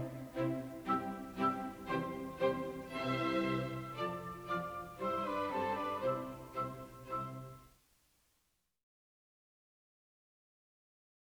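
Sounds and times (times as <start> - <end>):
symphony andante in G major: 0.0 - 7.6.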